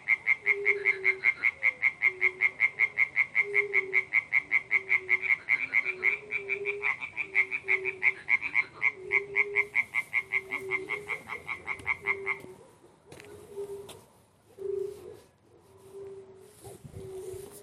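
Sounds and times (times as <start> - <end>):
frog croaking: 0.0 - 12.6.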